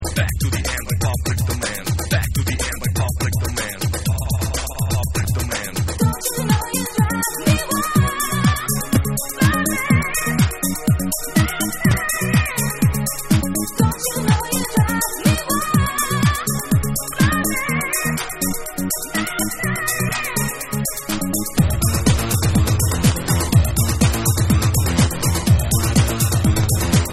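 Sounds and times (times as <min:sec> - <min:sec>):
techno music with turntable scratching: 0:00.0 - 0:27.1.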